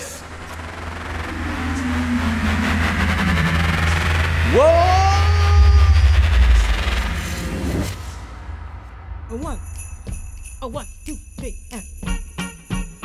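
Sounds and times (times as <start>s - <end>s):
train leaving: 0.0s - 8.8s.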